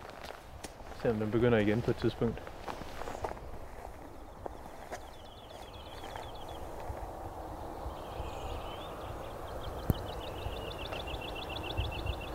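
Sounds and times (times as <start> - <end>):
crunching footsteps: 0.0 - 7.2
speech: 1.0 - 2.6
woodlark singing: 4.1 - 6.9, 7.5 - 12.3.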